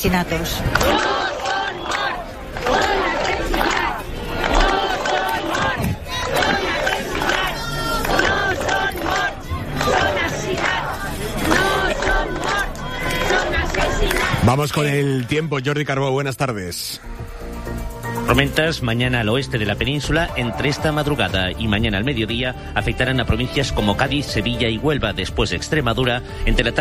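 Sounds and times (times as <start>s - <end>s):
speech: 0.0s - 1.3s, 14.5s - 17.2s, 18.3s - 26.7s
large protest crowd shouting slogans in unison: 0.1s - 14.8s, 19.8s - 22.0s.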